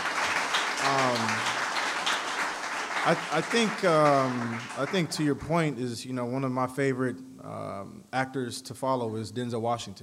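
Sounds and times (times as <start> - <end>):
audience round of applause: 0.0 - 5.2
voices calling out and cheering: 0.8 - 1.6, 3.0 - 5.0
speech: 3.1 - 10.0.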